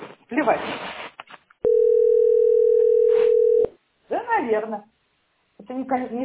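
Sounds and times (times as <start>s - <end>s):
speech: 0.3s - 0.9s, 4.5s - 4.9s, 5.7s - 6.2s
telephone ringback tone on an unanswered call: 1.6s - 3.7s.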